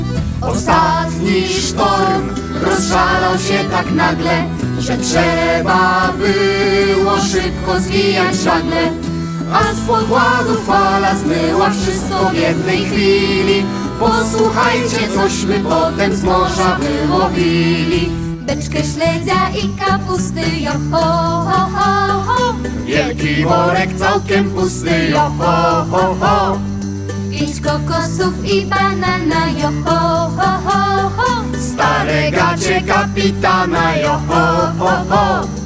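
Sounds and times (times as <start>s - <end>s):
vocals: 0.2s - 35.6s.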